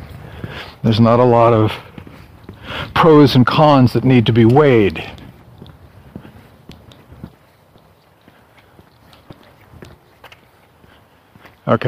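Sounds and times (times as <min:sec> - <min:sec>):
constant low noise: 0:00.0 - 0:11.8
soft scuffing footsteps on a walk: 0:00.0 - 0:11.8
speech: 0:00.6 - 0:01.9, 0:02.7 - 0:05.2, 0:11.7 - 0:11.8.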